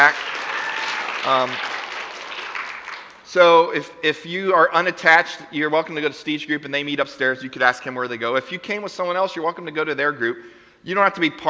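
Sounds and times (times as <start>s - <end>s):
church audience clapping: 0.0s - 3.3s
speech: 1.2s - 1.8s, 3.3s - 11.4s.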